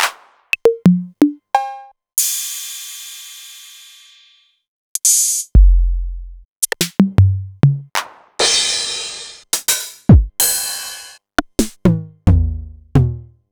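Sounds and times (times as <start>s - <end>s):
Novation Drumstation drum machine: 0.0s - 2.4s, 5.0s - 13.3s.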